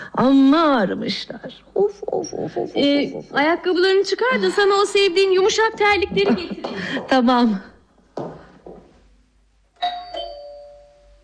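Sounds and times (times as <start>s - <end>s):
speech: 0.2s - 7.7s
doorbell two-note ding-dong chime: 9.8s - 11.2s.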